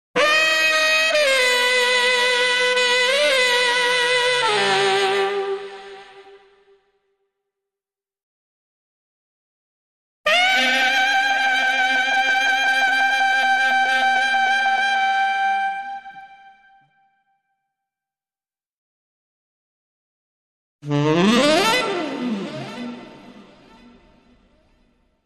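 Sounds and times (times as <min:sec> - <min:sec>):
haunted saxophone: 0:00.2 - 0:06.8, 0:10.3 - 0:17.0, 0:20.8 - 0:25.0.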